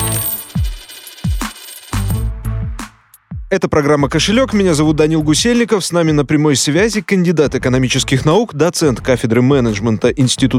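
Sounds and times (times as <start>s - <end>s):
coins jingling: 0.0s - 2.3s
speech: 3.5s - 10.5s.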